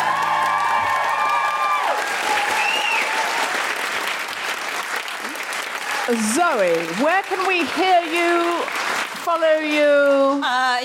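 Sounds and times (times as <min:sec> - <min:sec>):
sustained audience applause: 0:00.0 - 0:10.2
whistle or whoop: 0:00.1 - 0:03.2
speech: 0:06.1 - 0:10.8.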